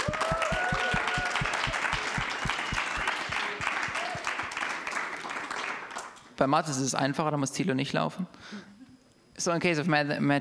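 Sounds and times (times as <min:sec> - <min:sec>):
audience applause: 0:00.0 - 0:06.2
speech: 0:06.4 - 0:08.7, 0:09.4 - 0:10.4.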